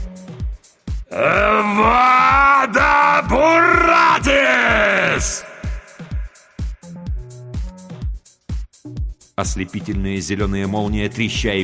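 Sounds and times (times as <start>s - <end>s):
man roaring: 1.1s - 6.5s
speech: 1.2s - 2.1s, 9.4s - 11.6s.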